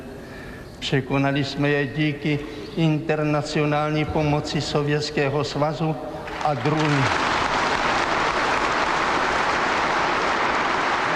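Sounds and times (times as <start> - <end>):
speech: 0.8 - 7.2
applause at a party congress: 6.3 - 11.1
cheering at a party congress: 6.4 - 11.1.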